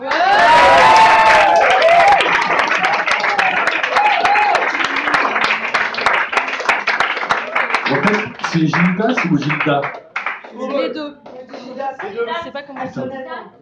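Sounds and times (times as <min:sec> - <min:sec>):
whoops and cheering voices: 0:00.0 - 0:05.3
crowd applause: 0:00.0 - 0:13.0
speech: 0:08.8 - 0:11.3, 0:12.0 - 0:13.6.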